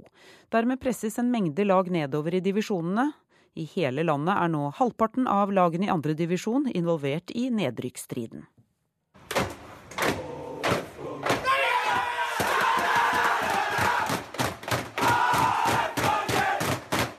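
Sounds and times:
speech: 0.5 - 8.5
sharp thumps and bangs: 9.2 - 17.1
football crowd cheering and shouting after a win: 10.0 - 17.1.

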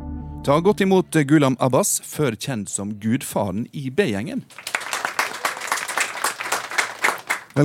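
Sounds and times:
speech: 0.4 - 4.7
audience applause and clapping: 4.5 - 7.6.

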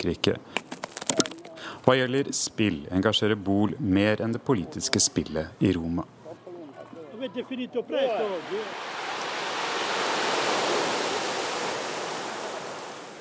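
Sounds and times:
speech: 0.0 - 0.6, 1.8 - 6.2, 7.2 - 8.9
Mediterranean sea waves breaking on a pebble beach in Ventimiglia: 8.3 - 13.1.

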